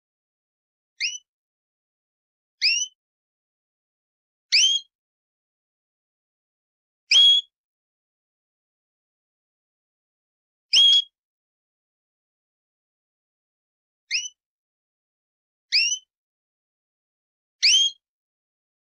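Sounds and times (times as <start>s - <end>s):
canary song of buzzy trills and whistled notes: 1.0s - 1.3s, 2.6s - 3.0s, 4.5s - 5.0s, 7.1s - 7.6s, 10.7s - 11.2s, 14.1s - 14.4s, 15.7s - 16.1s, 17.6s - 18.1s.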